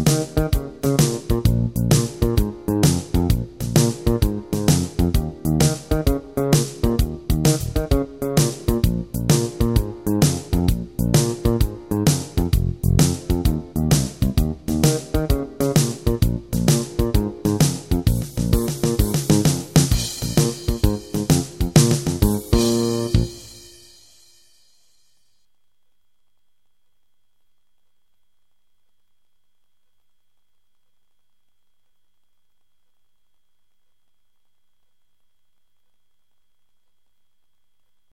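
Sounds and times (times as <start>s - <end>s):
blues shuffle backing track in B flat: 0.0s - 24.0s.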